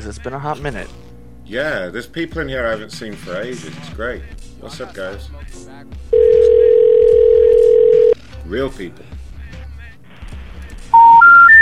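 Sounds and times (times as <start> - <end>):
speech: 0.0 - 6.6, 7.9 - 9.2
telephone intercept signal for a number not in service: 11.0 - 11.5.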